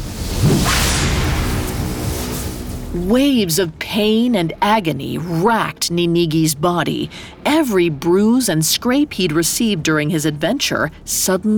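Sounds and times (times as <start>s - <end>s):
sword slicing through the air whoosh: 0.0s - 3.1s
speech: 2.9s - 11.5s.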